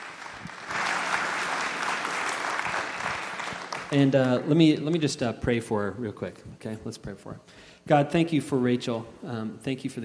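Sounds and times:
church congregation applauding to welcome a preacher: 0.0s - 5.0s
speech: 3.9s - 10.0s.

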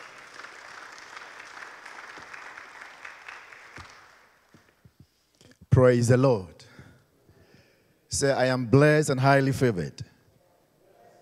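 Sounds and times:
audience applause: 0.0s - 4.5s
speech: 5.8s - 6.6s, 8.2s - 10.1s.

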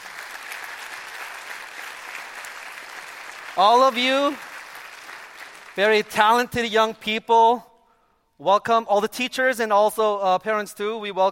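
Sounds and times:
congregation clapping at a church welcoming a wind symphony: 0.0s - 6.7s
speech: 3.6s - 4.5s, 5.8s - 7.7s, 8.4s - 11.2s.

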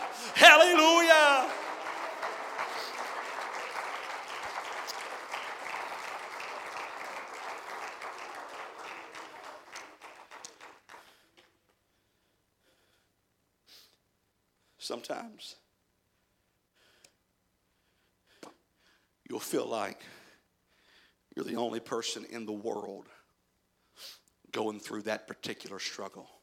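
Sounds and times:
audience clapping hands: 0.0s - 11.5s
speech: 0.4s - 1.6s, 14.9s - 15.6s, 19.4s - 20.2s, 21.4s - 23.2s, 24.0s - 26.4s.

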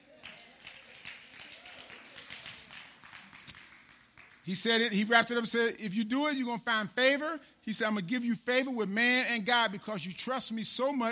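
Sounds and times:
audience hand clapping: 0.0s - 4.9s
speech: 4.5s - 11.0s.

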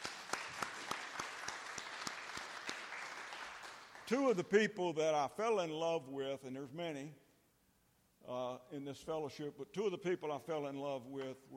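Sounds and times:
audience applause: 0.0s - 4.2s
speech: 4.1s - 7.2s, 8.2s - 11.5s.

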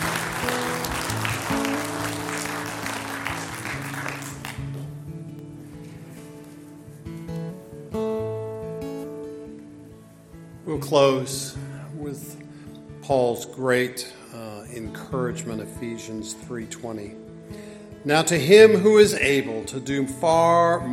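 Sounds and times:
audience applause: 0.0s - 4.8s
speech: 10.8s - 11.6s, 13.1s - 17.2s, 18.0s - 20.9s.

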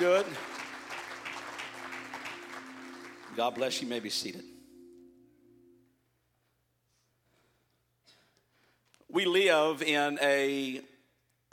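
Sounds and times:
speech: 0.0s - 0.6s, 3.4s - 4.6s, 9.2s - 10.9s
audience clapping hands: 0.0s - 4.5s.

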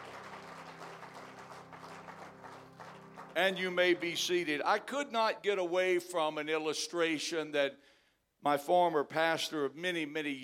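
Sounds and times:
audience clapping hands: 0.0s - 4.6s
speech: 3.4s - 10.4s.

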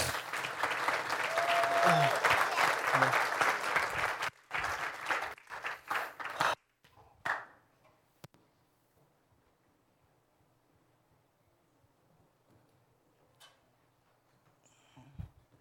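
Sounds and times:
audience applause: 0.0s - 6.6s.

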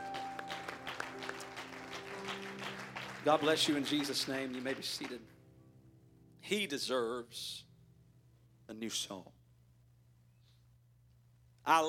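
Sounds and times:
audience clapping hands: 0.0s - 5.4s
sustained musical tone: 0.0s - 7.3s
speech: 3.2s - 5.4s, 6.5s - 7.6s, 8.7s - 9.4s, 11.7s - 11.8s.

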